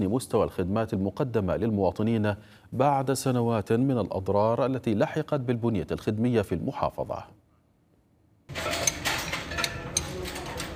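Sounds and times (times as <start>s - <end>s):
speech: 0.0s - 7.4s
steady mechanical hum: 8.5s - 10.7s
wrenches and spare parts clinking in garage: 8.5s - 10.7s.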